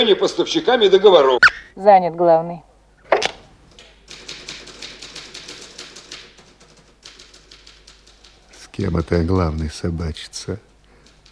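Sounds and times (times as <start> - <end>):
speech: 0.0 - 2.7, 8.8 - 10.7
typewriter typing: 3.8 - 11.3.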